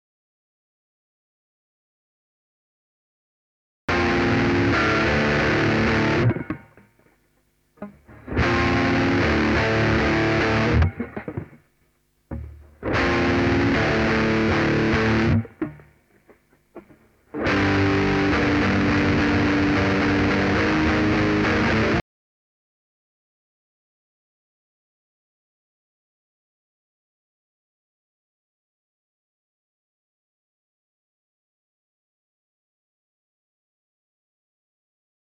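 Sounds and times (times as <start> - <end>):
saturated guitar: 3.9 - 7.2, 7.8 - 11.7, 12.3 - 22.0.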